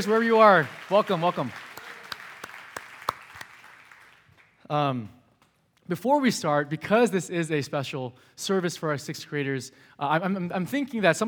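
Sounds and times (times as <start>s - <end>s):
speech: 0.0s - 1.6s, 4.7s - 5.2s, 5.9s - 11.2s
scattered applause: 0.0s - 4.6s.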